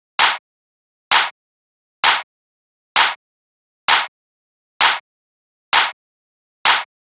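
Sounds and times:
techno clap loop at 130: 0.2s - 0.4s, 1.1s - 1.3s, 2.0s - 2.3s, 3.0s - 3.2s, 3.9s - 4.1s, 4.8s - 5.0s, 5.7s - 6.0s, 6.7s - 6.9s.

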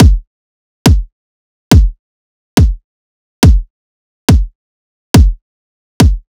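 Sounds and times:
riddim kick drum loop: 0.0s - 0.2s, 0.9s - 1.1s, 1.7s - 2.0s, 2.6s - 2.8s, 3.4s - 3.7s, 4.3s - 4.6s, 5.2s - 5.4s, 6.0s - 6.3s.

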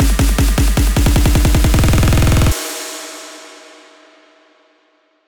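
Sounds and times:
music buildup loop: 0.2s - 2.6s.

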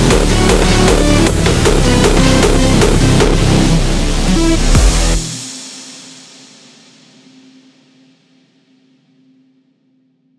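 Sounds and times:
drum kit mix: 0.0s - 6.3s.

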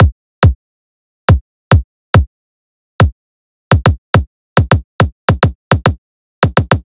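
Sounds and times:
riddim kick drum loop: 0.0s - 0.6s, 1.3s - 2.3s, 3.0s - 6.8s.

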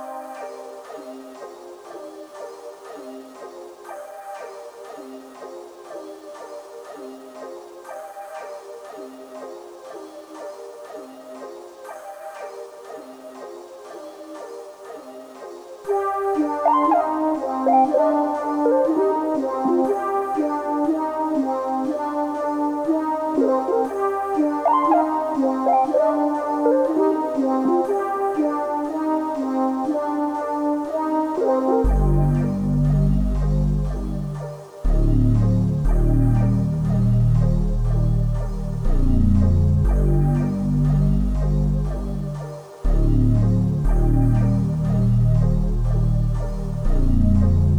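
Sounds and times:
120 BPM G minor melody: 15.9s - 47.7s.

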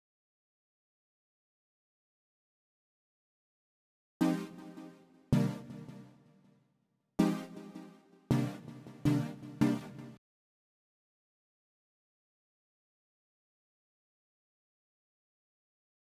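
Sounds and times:
161 BPM C minor synth melody loop: 4.2s - 6.0s, 7.2s - 10.2s.

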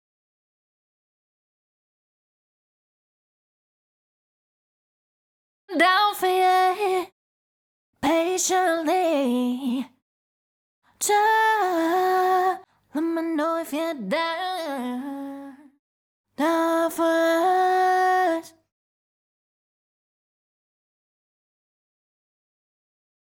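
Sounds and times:
clean a cappella pop vocal adlibs in F sharp minor: 5.7s - 7.1s, 8.0s - 10.0s, 11.0s - 15.8s, 16.4s - 18.6s.

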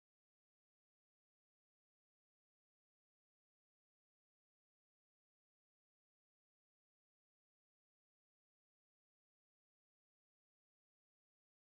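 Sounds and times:
bass in C sharp minor: 0.0s - 11.7s.

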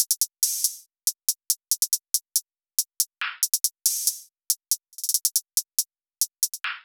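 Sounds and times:
hip hop hi-hat loop: 0.0s - 6.8s.

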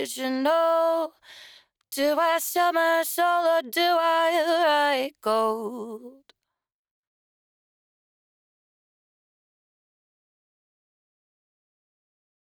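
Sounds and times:
dry a cappella lead vocal in B minor: 0.0s - 6.3s.

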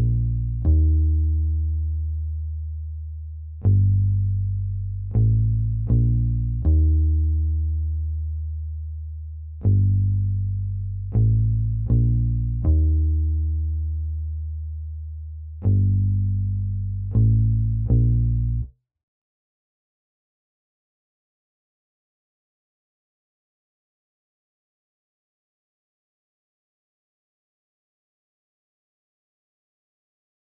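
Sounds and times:
80 BPM G minor bass loop: 0.0s - 18.7s.

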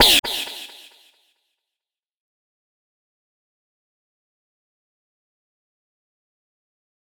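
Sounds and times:
techno effects: 0.0s - 1.0s.

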